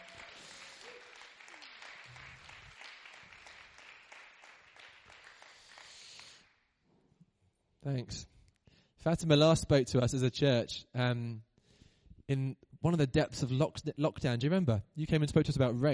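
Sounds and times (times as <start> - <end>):
audience cheering: 0.0 - 4.8
audience clapping: 0.0 - 6.6
speech: 7.8 - 8.3, 9.0 - 11.5, 12.3 - 15.9.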